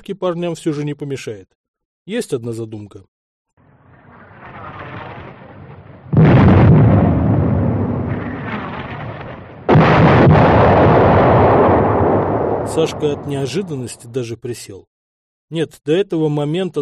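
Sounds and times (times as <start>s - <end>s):
speech: 0.0s - 3.1s, 12.8s - 14.9s, 15.5s - 16.8s
artillery gun firing shells: 4.1s - 13.2s.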